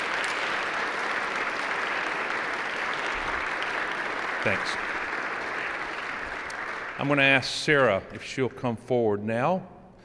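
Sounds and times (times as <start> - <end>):
audience applause: 0.0 - 8.0
speech: 4.4 - 4.9, 7.0 - 9.8.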